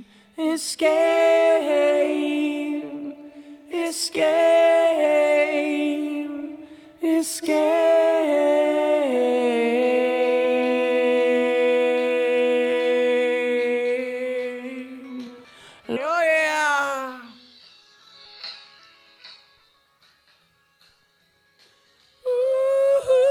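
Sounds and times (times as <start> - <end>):
person singing: 0.0 - 17.5, 22.2 - 23.3.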